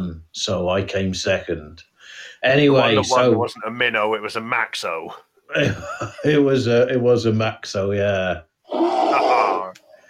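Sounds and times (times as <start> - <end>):
speech: 0.1 - 9.3
person imitating a bear growl: 8.7 - 9.8.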